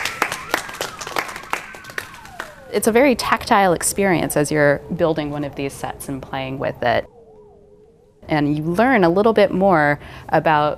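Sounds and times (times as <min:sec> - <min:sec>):
audience applause for stage sets: 0:00.0 - 0:02.6
speech: 0:02.7 - 0:07.2, 0:08.3 - 0:10.7.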